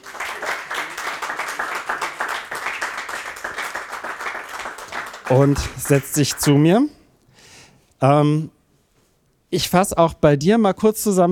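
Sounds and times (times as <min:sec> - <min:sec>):
audience applause: 0:00.0 - 0:06.6
speech: 0:05.3 - 0:07.0, 0:08.0 - 0:08.6, 0:09.5 - 0:11.3.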